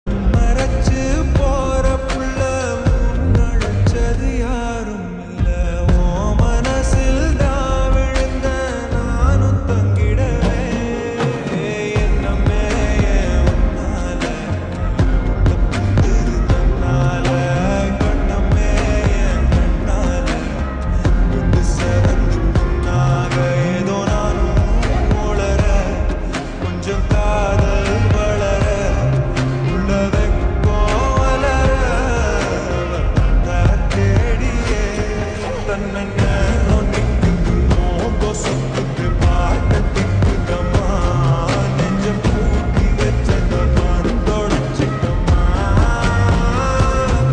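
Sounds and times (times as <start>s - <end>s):
slowed lo-fi music with reverb: 0.0s - 47.3s.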